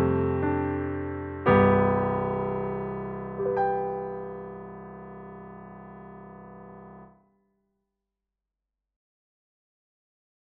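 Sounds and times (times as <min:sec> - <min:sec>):
piano: 0:00.0 - 0:07.4.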